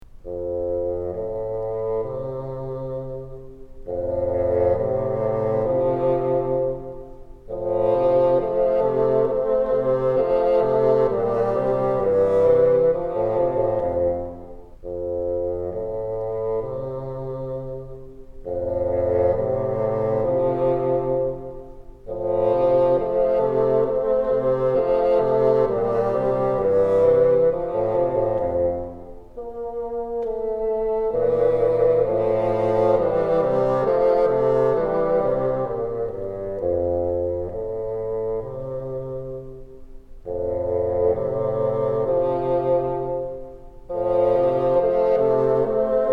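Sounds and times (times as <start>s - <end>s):
bassoon: 0.1s - 46.1s.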